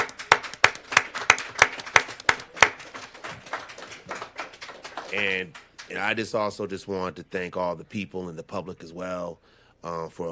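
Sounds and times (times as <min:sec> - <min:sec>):
round of applause: 0:00.0 - 0:06.1
speech: 0:05.1 - 0:10.3.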